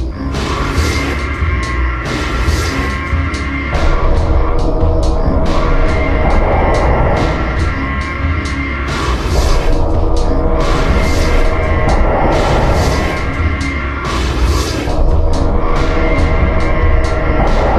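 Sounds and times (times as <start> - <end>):
tense music: 0.0 - 17.7.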